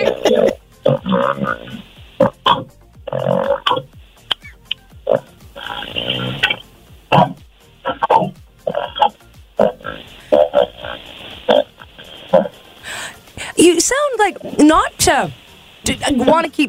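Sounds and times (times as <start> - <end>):
person imitating snoring during normal sleep for a snoring contest: 0.0 - 3.9, 5.1 - 6.6, 7.2 - 12.6
speech: 14.7 - 15.4, 16.0 - 16.6.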